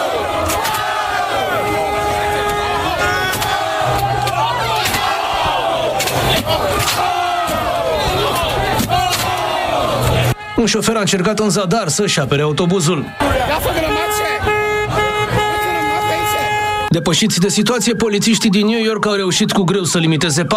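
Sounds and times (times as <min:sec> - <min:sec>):
rowdy sports fans yelling and whooping in the street: 0:00.0 - 0:10.8, 0:12.8 - 0:14.0
low rumble of street noise: 0:00.0 - 0:20.5
speech: 0:10.6 - 0:14.2, 0:17.0 - 0:20.5.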